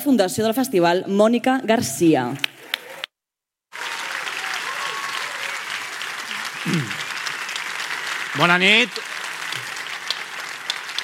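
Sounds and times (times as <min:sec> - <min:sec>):
speech: 0:00.0 - 0:02.7, 0:06.7 - 0:07.0, 0:08.4 - 0:09.2
audience applause: 0:02.4 - 0:03.1, 0:03.7 - 0:11.0.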